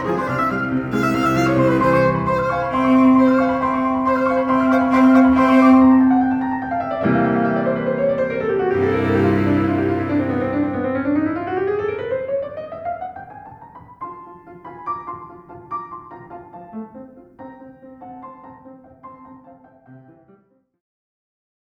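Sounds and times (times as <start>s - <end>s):
musical trio: 0.0s - 16.6s.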